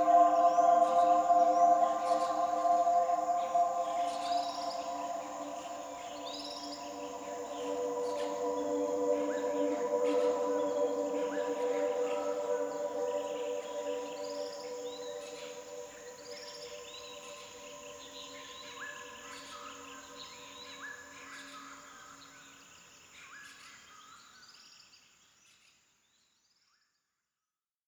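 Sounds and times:
relaxing music for children: 0:00.0 - 0:21.6.

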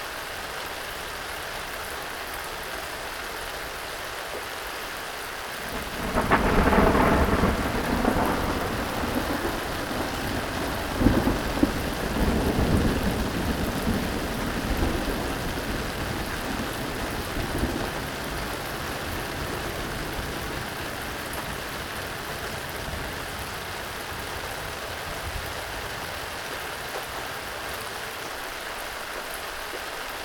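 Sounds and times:
rain: 0:00.0 - 0:30.2
thunder: 0:05.7 - 0:20.7.

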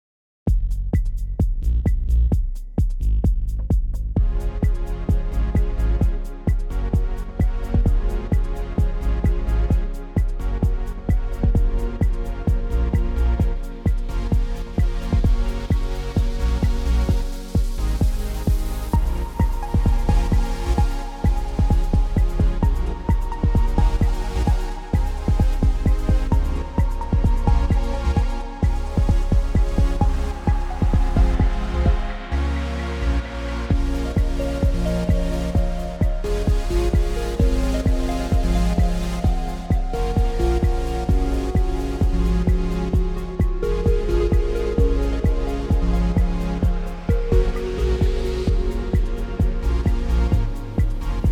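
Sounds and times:
acid bass: 0:00.5 - 0:51.3.

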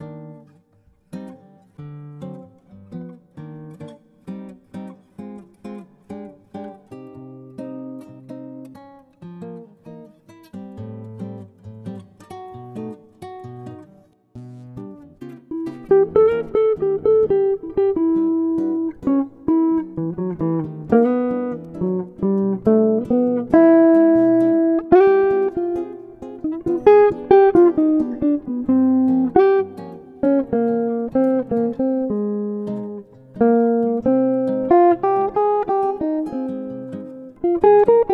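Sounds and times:
morning jazz music: 0:15.5 - 0:38.1.

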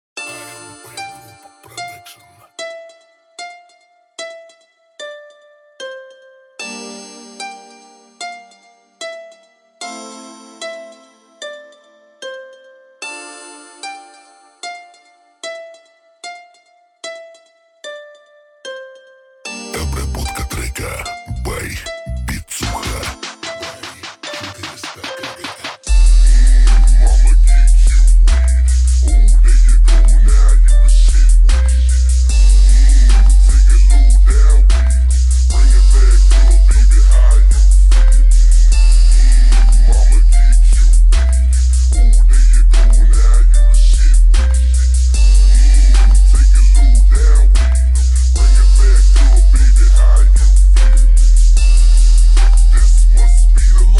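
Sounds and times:
low bass: 0:25.9 - 0:53.9.

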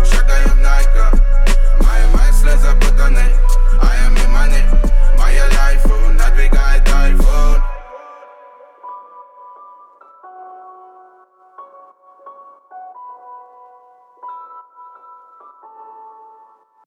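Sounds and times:
26-29 Hz low bass tone: 0:00.0 - 0:07.9.

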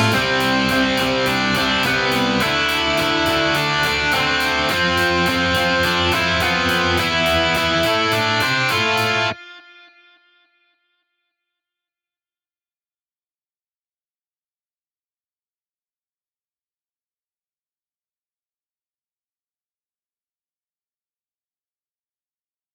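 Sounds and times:
pop punk music: 0:00.0 - 0:09.6.

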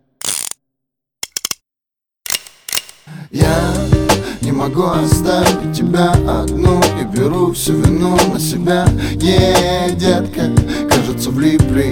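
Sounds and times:
metal revolver cylinder spinning with ratcheting whir: 0:00.2 - 0:00.6
revolver cylinder sharp clicks: 0:00.2 - 0:00.6, 0:01.2 - 0:01.6, 0:02.3 - 0:03.2
speech: 0:04.6 - 0:11.8.

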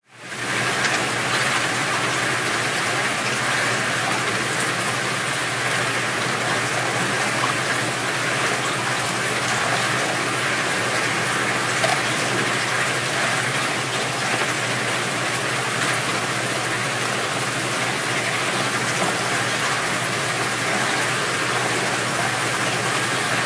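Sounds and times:
rain pouring in an alley: 0:00.0 - 0:23.4.

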